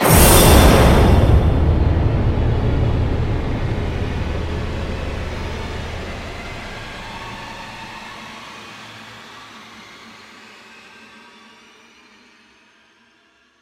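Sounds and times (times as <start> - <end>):
impact: 0.0 - 7.8.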